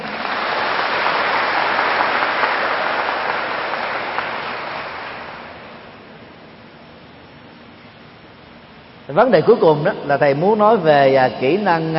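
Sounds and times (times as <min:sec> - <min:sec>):
large crowd applause: 0:00.0 - 0:05.9
speech: 0:09.2 - 0:11.9.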